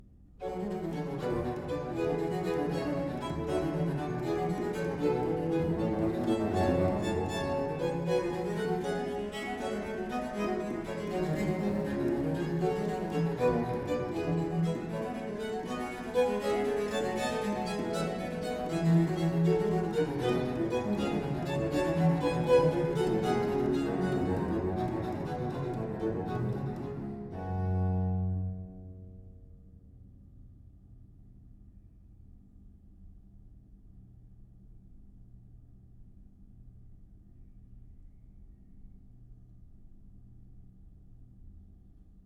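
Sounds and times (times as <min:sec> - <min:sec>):
sonata in G minor vivace movement: 0:00.4 - 0:29.0.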